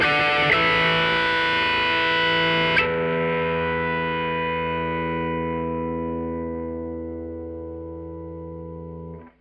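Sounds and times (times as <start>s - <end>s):
rock music in E minor: 0.0s - 6.0s.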